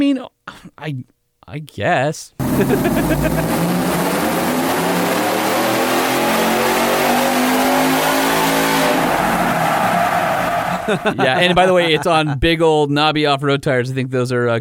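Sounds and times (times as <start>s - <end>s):
speech: 0.0s - 4.2s, 10.9s - 14.5s
laughter: 2.4s - 3.8s, 10.4s - 12.5s
V8 truck engine revving on a dyno: 2.4s - 11.2s.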